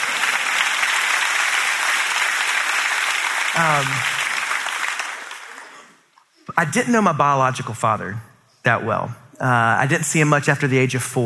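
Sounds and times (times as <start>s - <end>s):
audience applause: 0.0s - 6.0s
speech: 3.6s - 4.2s, 6.6s - 11.2s.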